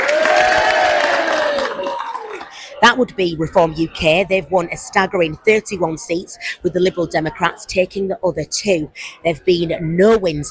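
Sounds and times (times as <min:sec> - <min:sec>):
Reform UK supporters shouting whoops at the Wakefield election count: 0:00.0 - 0:02.5
clapping: 0:00.0 - 0:02.6
crowd noise at Thornes Park Stadium: 0:00.0 - 0:10.4
speech: 0:02.8 - 0:10.4.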